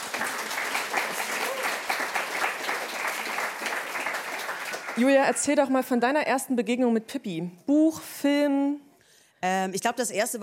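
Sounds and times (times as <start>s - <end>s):
short applause: 0.0s - 5.5s
speech: 5.0s - 10.4s.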